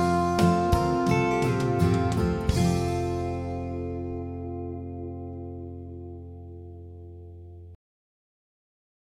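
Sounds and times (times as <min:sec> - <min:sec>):
flugelhorn: 0:00.0 - 0:03.8.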